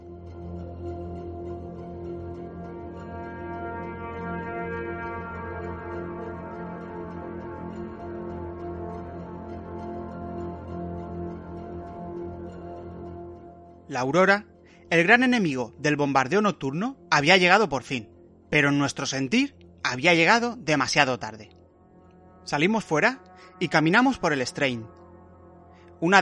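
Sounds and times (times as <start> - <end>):
air raid all-clear siren: 2.4 - 12.9, 21.8 - 26.0
speech: 13.9 - 21.6, 22.4 - 25.0, 26.0 - 26.2.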